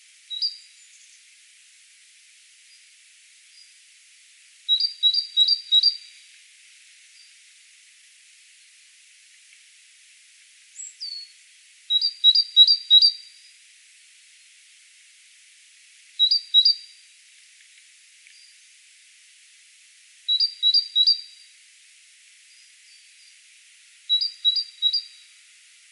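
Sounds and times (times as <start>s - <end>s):
hiss: 0.0s - 25.8s
great tit calling: 4.7s - 6.0s, 16.2s - 16.8s, 20.3s - 21.2s, 24.1s - 25.2s
faint click: 17.3s - 18.6s.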